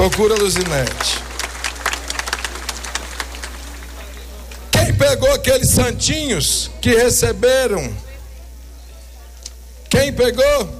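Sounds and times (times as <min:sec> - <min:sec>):
speech: 0:00.0 - 0:01.2, 0:05.0 - 0:08.0, 0:10.0 - 0:10.7
audience round of applause: 0:00.0 - 0:04.7.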